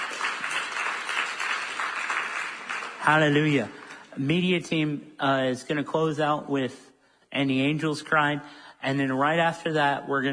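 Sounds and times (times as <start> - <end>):
audience hand clapping: 0.0 - 4.1
speech: 3.1 - 10.3.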